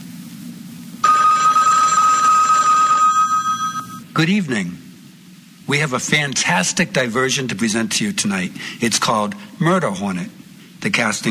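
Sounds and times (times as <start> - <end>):
top of the hour bell: 1.0 - 4.1
speech: 4.2 - 4.8, 5.7 - 11.2.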